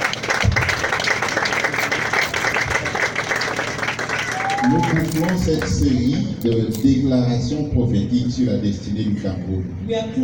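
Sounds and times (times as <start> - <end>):
church congregation clapping for Jesus during a service: 0.0 - 6.5
speech: 4.6 - 10.2.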